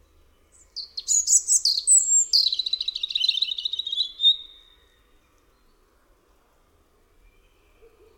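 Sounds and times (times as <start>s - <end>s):
European robin singing: 0.0s - 5.8s.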